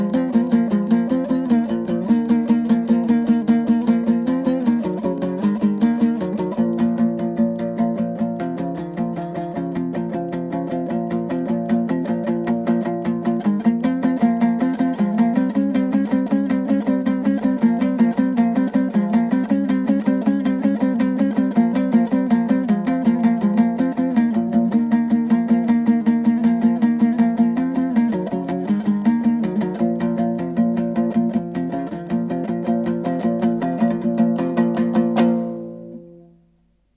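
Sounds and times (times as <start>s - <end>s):
kui instrumental folk piece: 0.0s - 36.9s.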